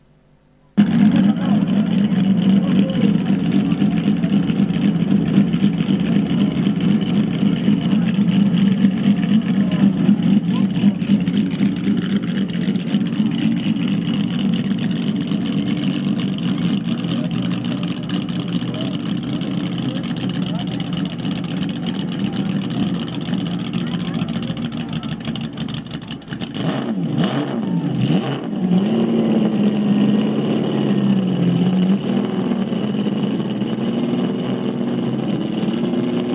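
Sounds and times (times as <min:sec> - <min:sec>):
Ferrari 335 Spider Scaglietti racing car engine running, chassis 646: 0:00.8 - 0:36.3.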